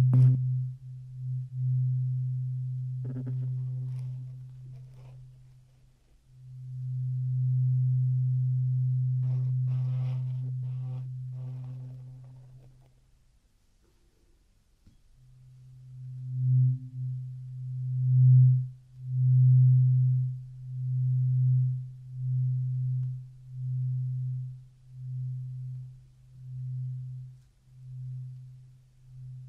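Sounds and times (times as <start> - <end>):
low hum: 0.0 - 13.0, 15.2 - 29.4
ear cleaning scratchy clicks: 3.1 - 5.9, 9.2 - 13.0.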